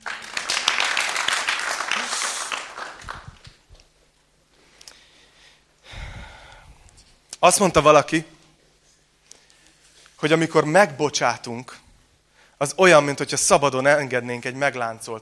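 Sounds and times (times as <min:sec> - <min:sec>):
audience applause: 0:00.0 - 0:03.5
speech: 0:07.4 - 0:08.4, 0:10.2 - 0:11.8, 0:12.6 - 0:15.2.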